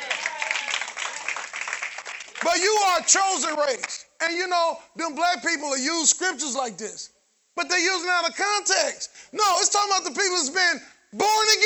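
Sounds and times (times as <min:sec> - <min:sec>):
audience clapping: 0:00.0 - 0:03.1
speech: 0:02.4 - 0:11.6.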